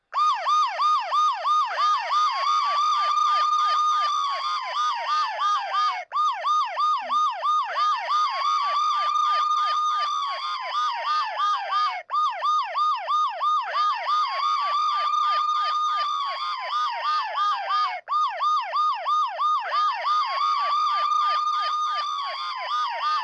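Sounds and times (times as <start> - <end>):
siren: 0.0 - 23.2.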